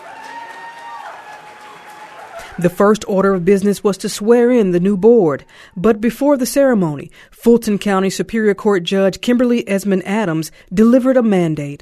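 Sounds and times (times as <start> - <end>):
crowd cheering and clapping as new Fulton County board members walk in: 0.0 - 2.8
speech: 2.6 - 11.8.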